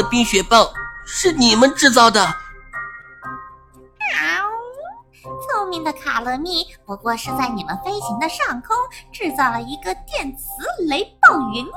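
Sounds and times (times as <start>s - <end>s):
speech: 0.1s - 2.4s, 5.7s - 11.7s
cat meowing: 4.0s - 4.8s.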